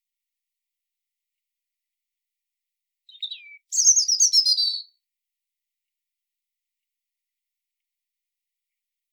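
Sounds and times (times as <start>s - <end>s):
European robin song: 3.1s - 5.0s.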